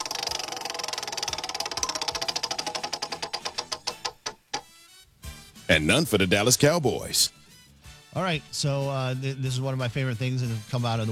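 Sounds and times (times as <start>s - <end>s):
big prize wheel spinning in a studio, pointer ticking: 0.0s - 4.7s
speech: 5.7s - 7.4s, 8.2s - 11.1s.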